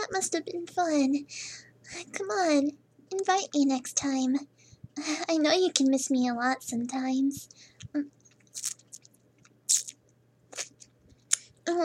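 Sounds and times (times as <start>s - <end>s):
speech: 0.0s - 8.8s, 11.7s - 11.8s
chewing gum: 7.8s - 11.5s.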